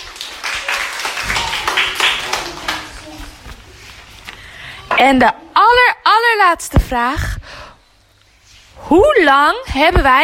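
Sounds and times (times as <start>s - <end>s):
audience applause: 0.0s - 3.4s
speech: 5.0s - 7.4s, 8.9s - 10.2s.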